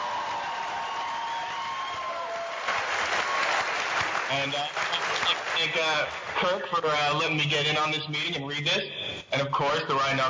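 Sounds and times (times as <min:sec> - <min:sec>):
audience applause: 0:00.0 - 0:06.6
speech: 0:04.3 - 0:10.2.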